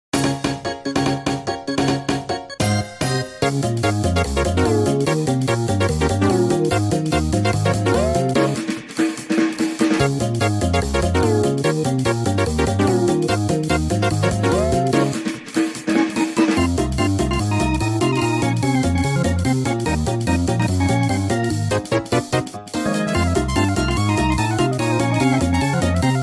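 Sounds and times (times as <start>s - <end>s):
slot machine theme music: 0.2s - 26.2s.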